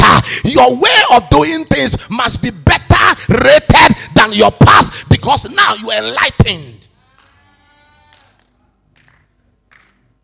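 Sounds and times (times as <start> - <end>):
speech: 0.6 - 6.9
two people clapping: 7.1 - 7.4, 8.1 - 10.2.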